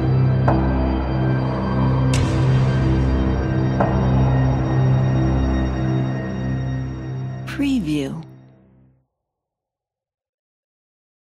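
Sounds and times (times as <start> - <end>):
scary horror trailer music: 0.0 - 7.9.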